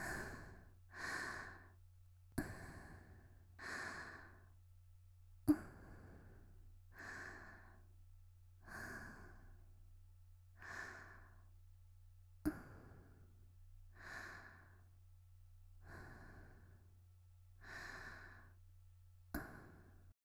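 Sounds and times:
quiet breathing: 0:00.0 - 0:04.6, 0:05.4 - 0:08.0, 0:08.6 - 0:09.8, 0:10.6 - 0:11.6, 0:12.4 - 0:15.0, 0:15.8 - 0:18.7, 0:19.3 - 0:20.2.

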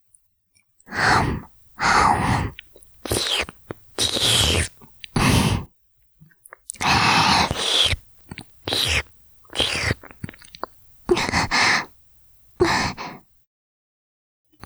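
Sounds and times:
ear licking: 0:00.9 - 0:05.7, 0:06.5 - 0:13.3.

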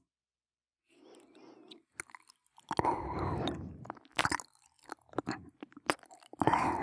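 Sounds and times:
binaural ASMR ear licking: 0:01.7 - 0:06.8.

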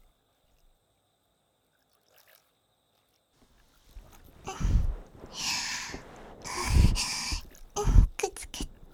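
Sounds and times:
water flowing in a forest: 0:03.6 - 0:08.9
ASMR ear cleaning: 0:03.9 - 0:08.9.

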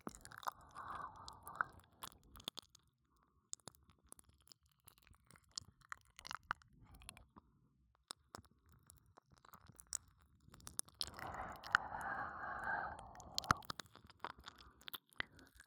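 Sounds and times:
ear licking: 0:00.1 - 0:02.1, 0:11.0 - 0:15.3.

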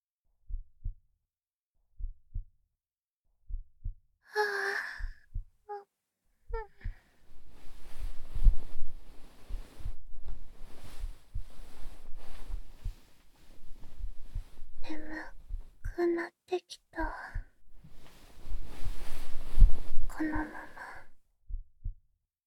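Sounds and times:
slow heartbeat: 0:00.4 - 0:01.1, 0:01.9 - 0:02.6, 0:03.4 - 0:04.1, 0:04.8 - 0:05.7, 0:06.5 - 0:16.2, 0:17.0 - 0:22.1
breathy vocal sigh: 0:04.3 - 0:05.2
breath noise: 0:04.3 - 0:05.3, 0:06.5 - 0:15.8, 0:17.0 - 0:21.2.

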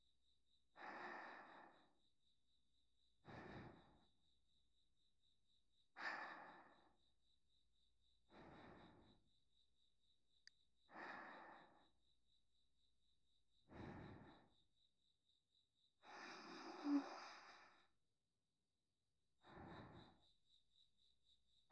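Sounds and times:
sleep breathing on the right: 0:00.8 - 0:02.0, 0:03.2 - 0:04.2, 0:06.0 - 0:07.1, 0:08.2 - 0:09.3, 0:10.9 - 0:12.0, 0:13.6 - 0:14.5, 0:16.0 - 0:17.9, 0:19.4 - 0:20.3.

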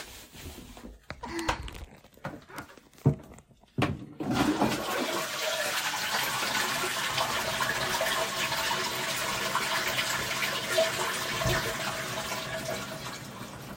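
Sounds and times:
stomach growling: 0:01.1 - 0:03.3
person urinating in a toilet: 0:01.1 - 0:03.5, 0:04.2 - 0:13.7.

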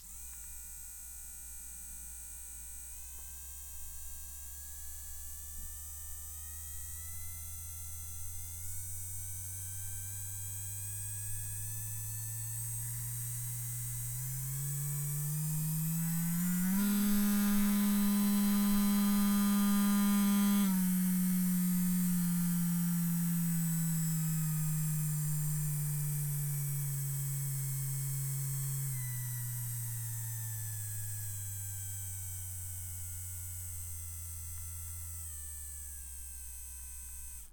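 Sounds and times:
electric massager buzzing: 0:00.0 - 0:37.5.

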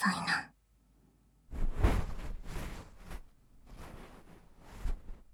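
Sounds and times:
ear cleaning sounds: 0:01.6 - 0:05.3.

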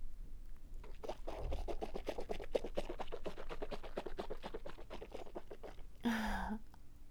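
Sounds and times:
liquid bubbling and foaming in a mouth: 0:00.8 - 0:06.0.

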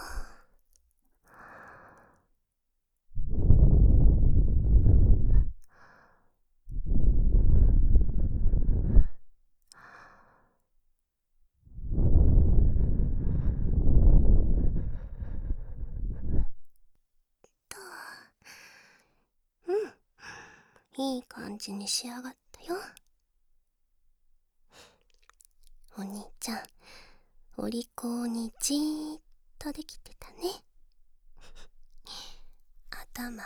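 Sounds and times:
breath blown onto the microphone: 0:03.2 - 0:05.6, 0:06.7 - 0:09.2, 0:11.7 - 0:16.6
speech: 0:21.0 - 0:23.0, 0:26.0 - 0:26.8, 0:27.6 - 0:30.7, 0:33.2 - 0:33.4.

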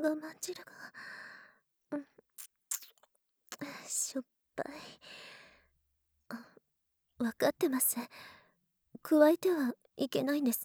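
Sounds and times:
speech: 0:00.0 - 0:01.2, 0:01.9 - 0:02.1, 0:03.6 - 0:05.3, 0:07.2 - 0:08.4, 0:09.0 - 0:10.6
wet licking and mouth noises in sexual role-play: 0:02.4 - 0:03.1
person breathing: 0:05.0 - 0:05.6.

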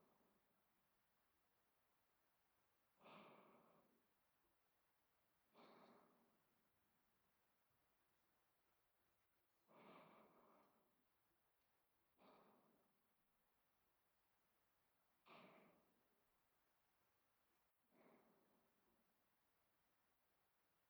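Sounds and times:
person breathing in sleep: 0:03.0 - 0:04.1, 0:05.4 - 0:06.5, 0:09.7 - 0:11.0, 0:12.1 - 0:13.0, 0:15.2 - 0:16.0, 0:17.9 - 0:18.9.

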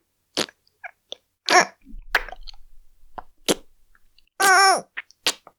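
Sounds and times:
kissing: 0:01.5 - 0:04.6.

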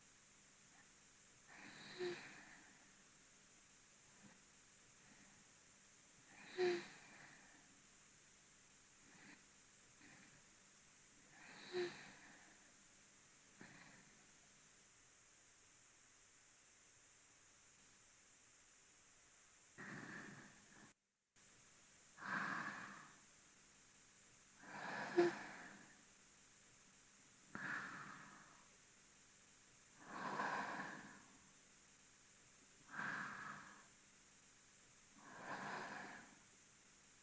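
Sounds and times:
person breathing in sleep, binaural: 0:00.7 - 0:03.0, 0:06.2 - 0:07.8, 0:09.0 - 0:10.5, 0:11.2 - 0:12.8, 0:13.5 - 0:14.2, 0:19.8 - 0:20.9, 0:22.2 - 0:23.3, 0:24.6 - 0:26.1, 0:27.5 - 0:28.8, 0:29.9 - 0:31.6, 0:32.8 - 0:34.0, 0:35.2 - 0:36.5.

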